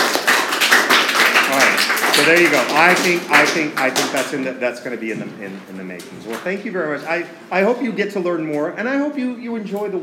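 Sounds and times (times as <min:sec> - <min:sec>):
crowd clapping: 0:00.0 - 0:04.5
speech: 0:02.3 - 0:10.0.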